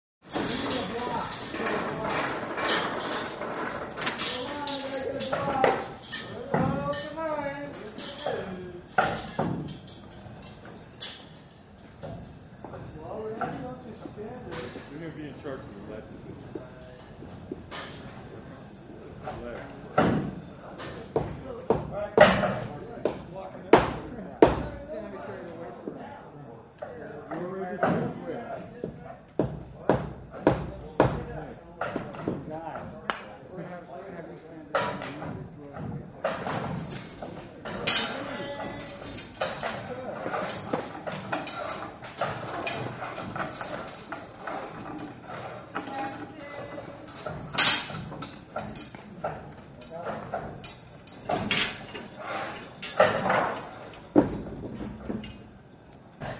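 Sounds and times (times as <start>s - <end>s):
chain moving: 0.2s - 21.2s, 36.2s - 54.5s
construction site voices: 0.3s - 11.0s, 12.0s - 54.4s.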